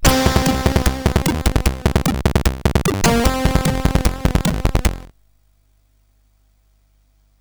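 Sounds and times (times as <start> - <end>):
SID chiptune music on a CSG8580R5 chip: 0.0 - 5.1.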